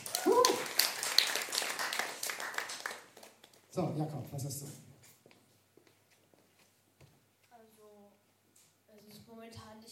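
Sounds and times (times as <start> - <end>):
crowd applauding: 0.0 - 3.7
person whooping or cheering: 0.1 - 0.7
speech: 3.8 - 4.9.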